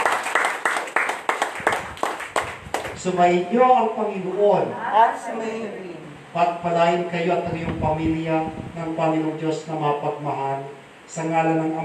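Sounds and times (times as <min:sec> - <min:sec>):
congregation clapping at a Eucharistic celebration: 0:00.0 - 0:03.2
speech: 0:03.0 - 0:11.8.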